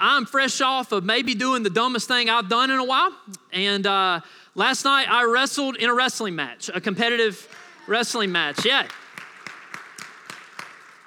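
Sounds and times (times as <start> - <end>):
speech: 0.1 - 9.0
audience clapping: 7.4 - 11.0.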